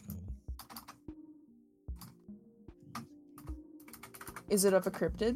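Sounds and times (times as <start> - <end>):
faint computer keyboard typing a search into Google: 0.5 - 1.1, 1.9 - 2.2, 2.9 - 5.2
speech: 4.5 - 5.3.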